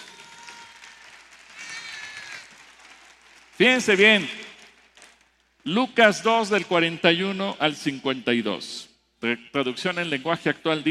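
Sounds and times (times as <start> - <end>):
audience applause: 0.0 - 5.0
speech: 3.6 - 4.4, 5.6 - 10.8.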